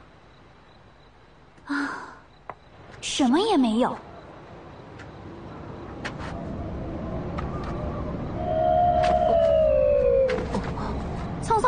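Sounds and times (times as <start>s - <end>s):
wind blowing over the mouth of a burial urn: 2.8s - 11.6s
speech: 3.0s - 4.1s.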